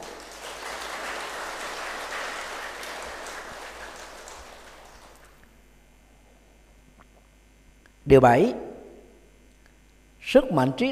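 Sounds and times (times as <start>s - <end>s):
audience applause: 0.0s - 5.4s
speech: 8.1s - 8.6s, 10.3s - 10.8s.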